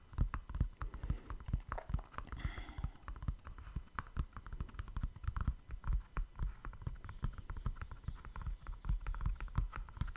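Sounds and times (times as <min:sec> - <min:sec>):
faint hum: 0:00.0 - 0:10.1
tapping: 0:00.0 - 0:10.1.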